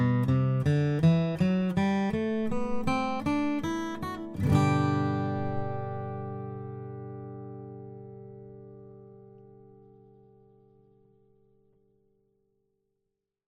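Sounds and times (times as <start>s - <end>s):
flattop steel string guitars: 0.0s - 10.6s.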